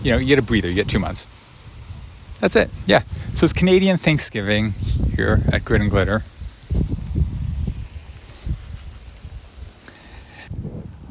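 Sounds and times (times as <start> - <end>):
speech: 0.0 - 1.4, 2.4 - 7.0
rain: 0.0 - 11.1
passerby's footsteps on rainy sidewalk: 6.6 - 10.6.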